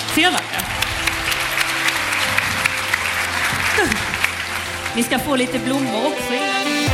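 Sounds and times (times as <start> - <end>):
audience applause: 0.0 - 5.9
speech: 0.2 - 0.6, 5.0 - 6.8.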